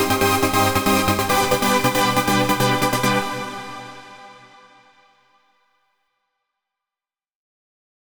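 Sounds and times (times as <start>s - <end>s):
synth mix with ensemble reverb: 0.0s - 5.0s.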